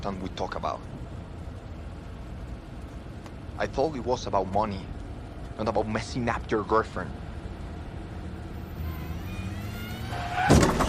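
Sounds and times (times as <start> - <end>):
speech: 0.0 - 1.0, 3.6 - 5.0, 5.6 - 7.2
car engine rumbling with thin rising whine: 0.0 - 10.8
car backing up being hit: 10.2 - 10.8.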